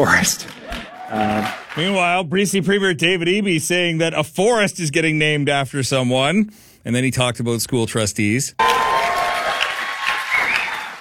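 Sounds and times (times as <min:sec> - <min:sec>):
speech: 0:00.0 - 0:08.7
audience clapping at a political speech event: 0:00.1 - 0:02.2, 0:08.6 - 0:10.9.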